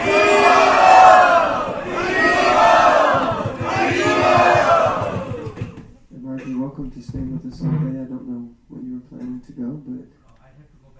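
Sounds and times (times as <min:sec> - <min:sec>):
crowd chanting in thanks: 0:00.0 - 0:05.8.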